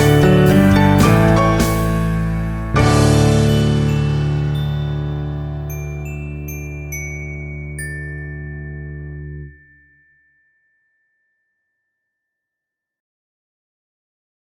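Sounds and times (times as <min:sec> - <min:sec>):
piano cover: 0:00.0 - 0:09.5.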